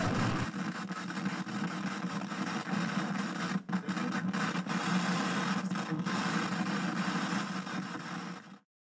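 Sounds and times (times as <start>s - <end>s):
television sound: 0.0s - 8.6s.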